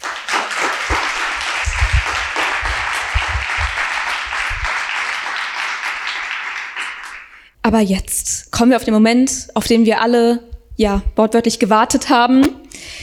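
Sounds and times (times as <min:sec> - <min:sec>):
crowd applause: 0:00.0 - 0:07.5
speech: 0:07.6 - 0:13.0.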